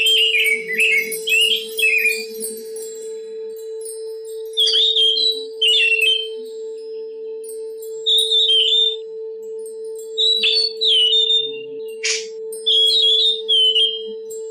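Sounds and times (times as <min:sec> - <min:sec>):
Oriental magpie-robin song: 0:00.0 - 0:02.8, 0:04.4 - 0:06.5, 0:08.0 - 0:09.0, 0:10.1 - 0:14.4.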